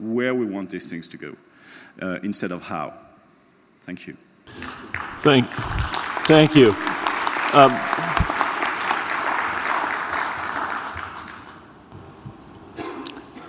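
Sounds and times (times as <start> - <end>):
speech: 0.1 - 3.1, 3.9 - 6.9, 7.5 - 8.1
audience applause: 4.5 - 11.9.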